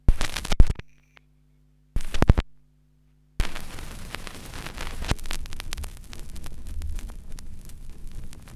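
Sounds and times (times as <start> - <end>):
vinyl cut: 0.0 - 0.8, 2.0 - 2.4, 3.4 - 8.5.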